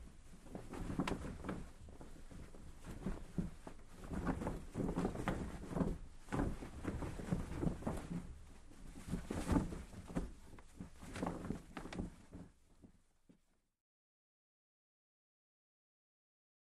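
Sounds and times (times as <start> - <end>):
small heavy canvas sail flapping: 0.0 - 13.0.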